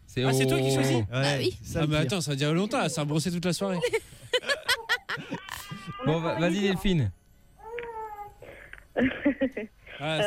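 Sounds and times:
speech: 0.2 - 4.2, 6.1 - 7.2, 9.0 - 10.2
laughter: 3.8 - 6.0
young daughter crying: 7.6 - 8.4.

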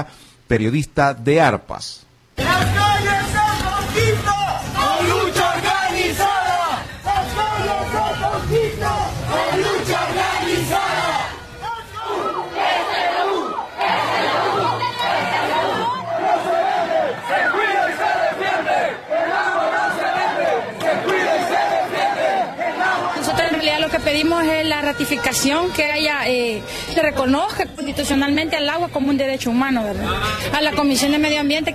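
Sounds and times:
speech: 0.0 - 2.9, 24.2 - 31.7
large protest crowd chanting: 2.4 - 29.1.

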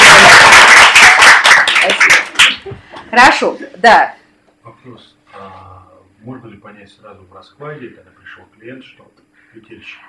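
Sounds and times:
audience applause at a talk: 0.0 - 2.7
speech: 3.2 - 4.2, 6.2 - 10.0.

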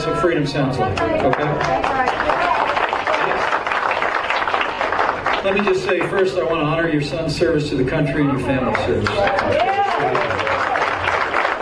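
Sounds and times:
speech: 0.1 - 2.5, 5.4 - 10.8
audience clapping: 0.9 - 6.7, 8.6 - 11.5.

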